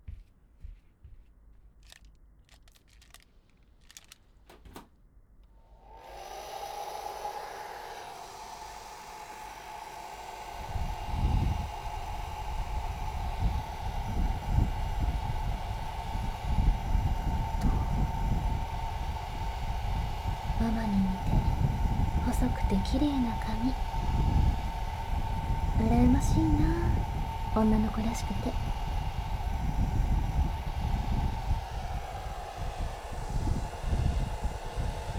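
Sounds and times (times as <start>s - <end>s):
hair dryer blowing: 0.0s - 4.8s, 5.5s - 35.1s
clicks: 1.8s - 5.6s
speech: 22.7s - 23.8s, 27.6s - 28.6s.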